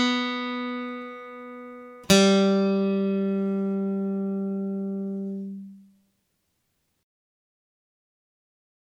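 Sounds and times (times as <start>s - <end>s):
acoustic guitar accompaniment: 0.0s - 6.6s.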